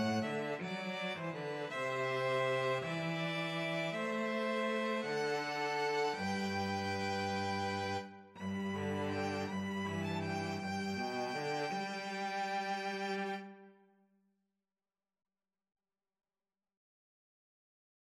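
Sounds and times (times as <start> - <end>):
violin and cello duet: 0.0 - 13.7.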